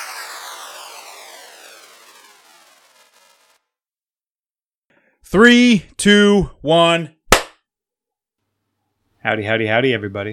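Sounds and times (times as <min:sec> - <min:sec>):
speech: 0:05.2 - 0:07.2, 0:09.2 - 0:10.3
hand clap: 0:07.3 - 0:07.6.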